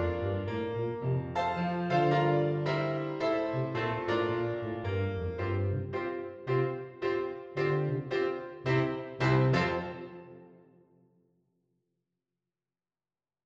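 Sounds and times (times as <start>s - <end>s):
tuba: 0.0s - 10.5s.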